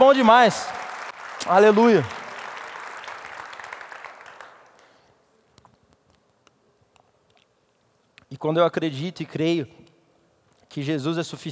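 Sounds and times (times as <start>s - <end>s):
speech: 0.0s - 0.8s, 1.4s - 2.2s, 8.4s - 9.8s, 10.7s - 11.5s
applause: 0.0s - 5.1s.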